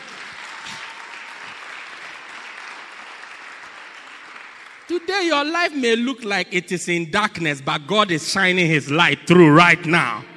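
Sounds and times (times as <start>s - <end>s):
large crowd clapping: 0.0s - 6.6s
speech: 4.9s - 10.3s.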